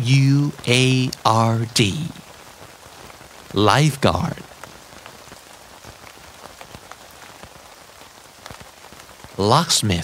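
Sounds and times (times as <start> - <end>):
speech: 0.0 - 2.2, 3.5 - 4.5, 9.4 - 10.0
rain falling: 0.0 - 10.0.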